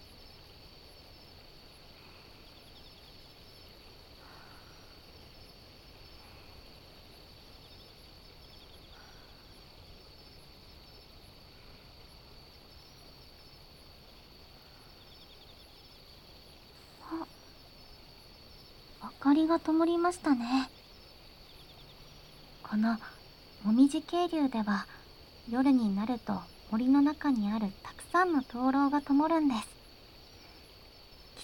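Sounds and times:
insects chirping in an autumn maple forest by a stream at night: 0.0 - 31.4
speech: 19.3 - 20.7, 22.8 - 29.7.

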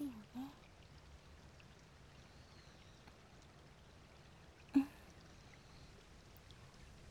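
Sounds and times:
babbling stream: 0.0 - 0.8, 4.1 - 7.0.

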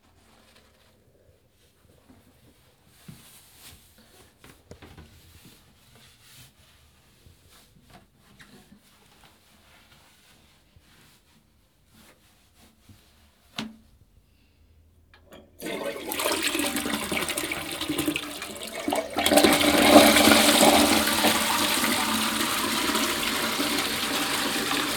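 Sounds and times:
person urinating: 15.3 - 24.9.

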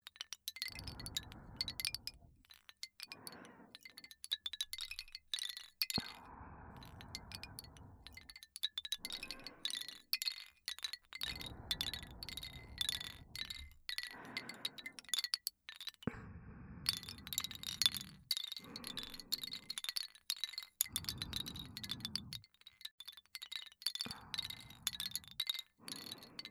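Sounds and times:
wooden wind chime: 0.0 - 16.1, 16.9 - 26.5
person breathing: 0.7 - 2.4, 3.0 - 4.2, 6.0 - 8.4, 9.0 - 10.1, 11.2 - 15.3, 16.0 - 20.0, 20.8 - 22.5, 24.0 - 26.5.

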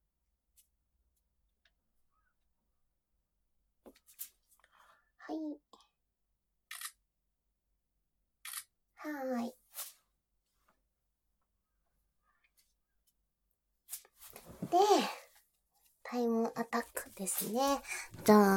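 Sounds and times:
camera shutter clicks: 6.7 - 7.0, 8.5 - 8.7
speech: 9.0 - 9.6, 14.7 - 15.1, 16.1 - 18.5.

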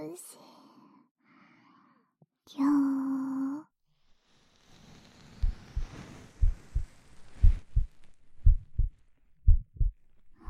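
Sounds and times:
speech: 2.5 - 3.0
soft whooshing hiss: 4.1 - 9.2
heartbeat: 5.4 - 10.4.

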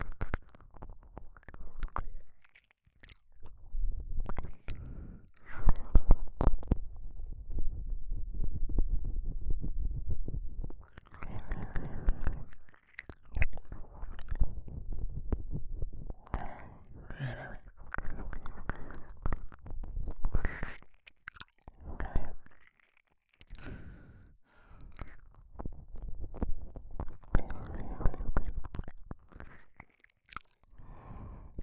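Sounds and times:
man licking ear on left side: 0.0 - 24.0, 24.8 - 31.6
man breathing heavily: 4.7 - 6.2, 11.5 - 12.5, 16.3 - 17.8, 23.5 - 25.3, 30.7 - 31.6.

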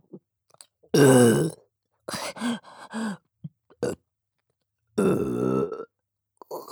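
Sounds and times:
loud throaty burps: 1.0 - 1.6, 5.0 - 5.9.

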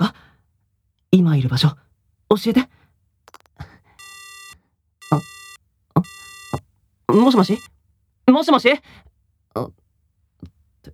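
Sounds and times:
speech: 1.2 - 2.8, 5.1 - 5.3, 7.1 - 7.7, 8.3 - 9.8
small clicks on the phone line: 3.3 - 6.6
phone line disconnection tone after a cut-off call: 4.0 - 7.7.

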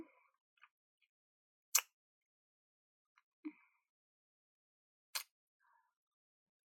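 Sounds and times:
kissing sounds: 1.7 - 1.9.

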